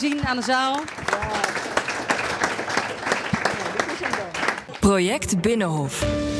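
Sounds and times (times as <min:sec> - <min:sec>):
speech: 0:00.0 - 0:01.6, 0:04.0 - 0:06.3
audience applause for the winner: 0:00.0 - 0:04.9.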